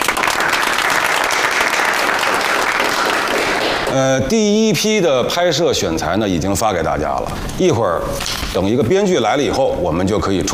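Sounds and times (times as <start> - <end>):
meeting audience applauding colleagues from the publicity department: 0.0 - 4.0
speech: 3.9 - 10.5.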